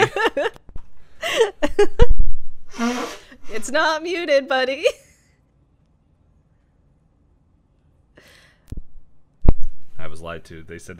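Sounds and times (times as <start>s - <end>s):
laughter: 0.0s - 0.6s
speech: 1.8s - 2.1s, 3.6s - 5.0s, 10.0s - 10.9s
person blowing nose: 2.7s - 3.4s.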